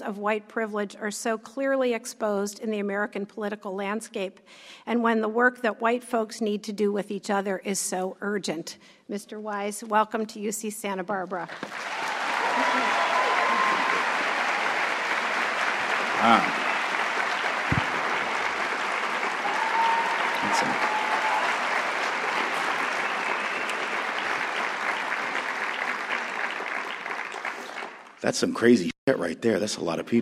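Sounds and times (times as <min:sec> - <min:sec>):
speech: 0:00.0 - 0:13.0, 0:16.2 - 0:16.6, 0:28.2 - 0:30.2
audience applause: 0:11.6 - 0:28.2.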